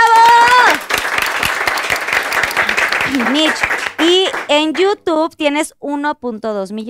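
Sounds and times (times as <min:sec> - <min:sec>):
audience applause: 0:00.0 - 0:04.7
speech: 0:04.6 - 0:06.8.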